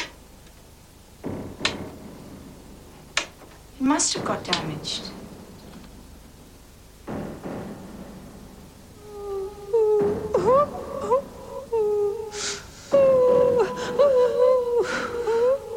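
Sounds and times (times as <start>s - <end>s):
speech: 3.8s - 5.2s
woman crying in a film: 9.0s - 15.7s.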